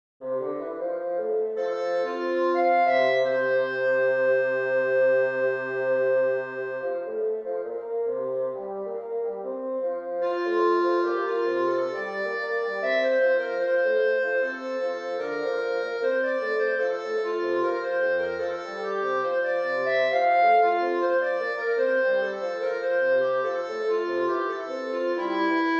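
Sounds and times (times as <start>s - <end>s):
bassoon: 0.2s - 25.7s
clarinet: 0.2s - 25.7s.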